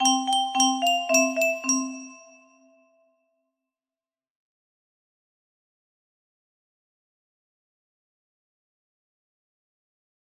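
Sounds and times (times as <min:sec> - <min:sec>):
music box melody: 0:00.0 - 0:02.8.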